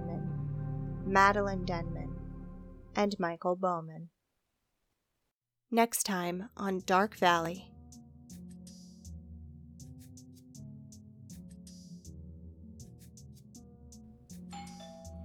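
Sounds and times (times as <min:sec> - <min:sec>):
speech: 0:01.1 - 0:02.0, 0:03.0 - 0:04.2, 0:05.7 - 0:07.7
doorbell chiming ding-dong: 0:14.6 - 0:15.2.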